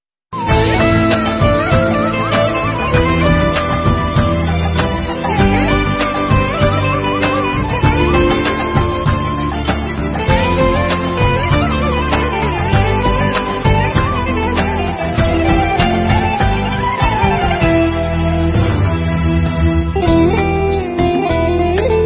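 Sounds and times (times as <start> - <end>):
instrumental music: 0.3 - 22.0.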